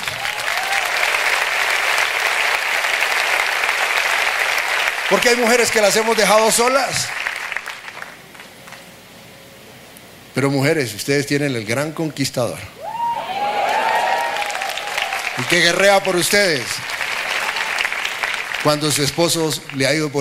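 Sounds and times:
audience applause: 0.0 - 8.5, 12.9 - 20.2
speech: 5.1 - 7.2, 10.4 - 12.8, 15.4 - 16.9, 18.6 - 20.2.

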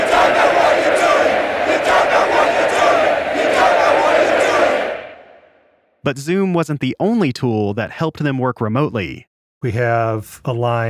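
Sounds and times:
stadium full of angry soccer fans: 0.0 - 5.6
speech: 6.0 - 10.8.

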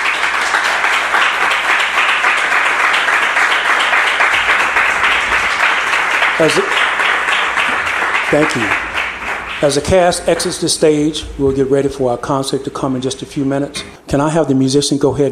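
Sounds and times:
crowd applause: 0.0 - 11.9
speech: 6.4 - 6.8, 8.3 - 8.8, 9.6 - 15.3.

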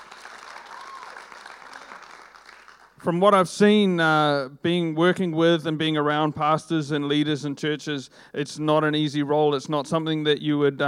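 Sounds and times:
audience applause: 0.0 - 3.0
speech: 3.0 - 10.8.

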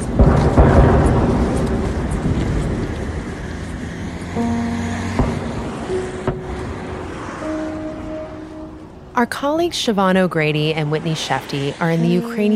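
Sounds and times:
outgoing artillery fire from the Ukrainian side: 0.0 - 4.1, 5.1 - 7.6
speech: 9.2 - 12.5.

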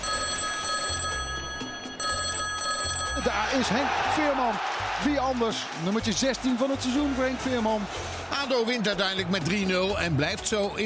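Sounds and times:
old-style telephone bell ringing: 0.0 - 3.7
speech: 3.2 - 10.8.

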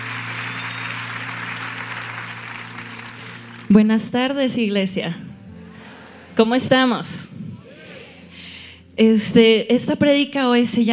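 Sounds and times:
church audience applause: 0.0 - 3.8
speech: 3.7 - 5.3, 6.4 - 7.3, 9.0 - 10.9.

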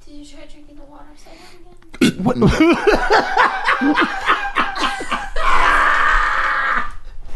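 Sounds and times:
speech: 0.1 - 4.2
hiccup with burpy air: 1.9 - 2.6
laughter: 2.2 - 6.4.

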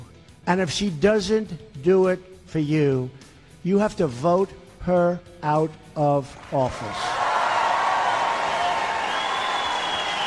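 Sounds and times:
speech: 0.5 - 7.1
crowd roaring and applauding at rally: 6.4 - 10.2.

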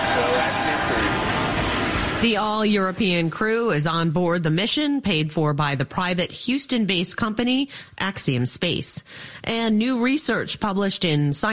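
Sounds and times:
rocket engine roar at liftoff: 0.0 - 4.1
speech: 2.2 - 11.5.

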